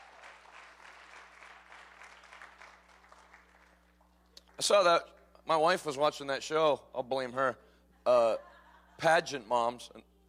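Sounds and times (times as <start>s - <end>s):
audience hand clapping: 0.0s - 4.7s
speech: 4.6s - 10.1s.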